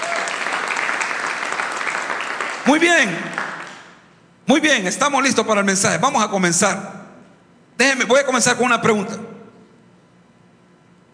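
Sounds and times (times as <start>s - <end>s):
audience applauding: 0.0s - 4.0s
speech: 2.7s - 3.4s, 4.5s - 7.0s, 7.8s - 9.3s.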